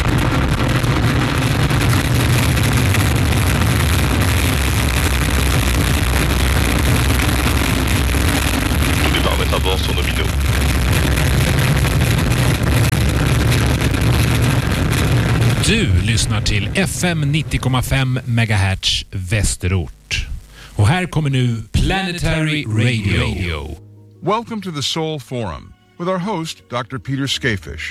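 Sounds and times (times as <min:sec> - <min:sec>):
rocket engines igniting at launch liftoff: 0:00.0 - 0:18.6, 0:21.7 - 0:23.8
speech: 0:16.8 - 0:27.8.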